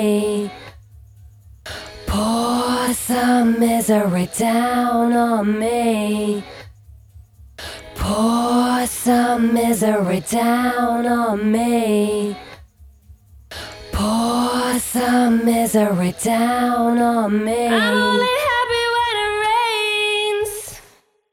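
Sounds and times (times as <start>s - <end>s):
person singing: 0.0s - 0.8s, 2.1s - 6.6s, 8.0s - 12.6s, 14.0s - 20.9s.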